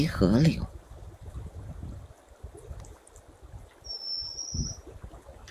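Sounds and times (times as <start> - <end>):
speech: 0.0 - 0.8
White-capped redstart calling by mountain stream: 3.8 - 4.8.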